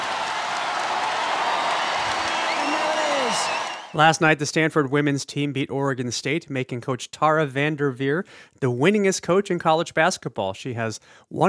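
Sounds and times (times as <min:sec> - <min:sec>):
college women's basketball crowd roaring and chanting the coach's name: 0:00.0 - 0:04.0
speech: 0:03.9 - 0:11.4.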